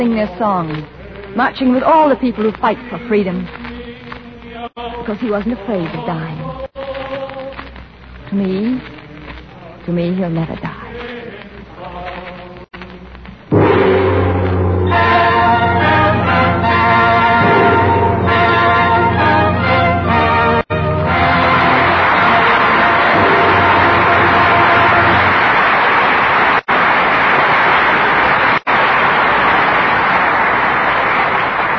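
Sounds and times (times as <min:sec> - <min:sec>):
speech: 0:00.0 - 0:03.6, 0:04.8 - 0:06.5, 0:08.3 - 0:08.9, 0:09.8 - 0:10.8
orchestral music: 0:13.5 - 0:25.8
audience applause: 0:20.8 - 0:31.7.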